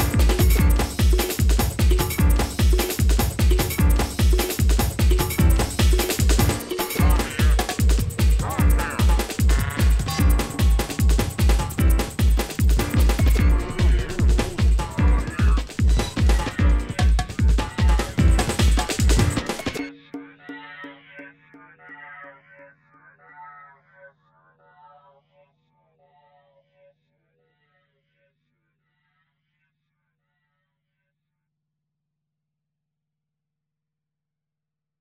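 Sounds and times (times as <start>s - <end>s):
piano bar music: 0.0s - 19.8s.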